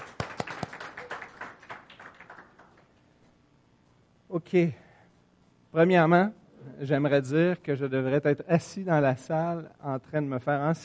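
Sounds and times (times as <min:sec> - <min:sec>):
audience applause: 0:00.0 - 0:02.9
speech: 0:04.3 - 0:04.8, 0:05.7 - 0:10.8.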